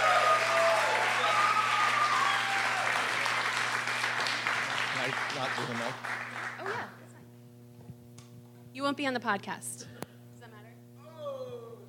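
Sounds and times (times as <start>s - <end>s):
audience applause welcoming a performer to the stage: 0.0s - 6.9s
speech: 5.4s - 7.0s, 8.8s - 9.9s.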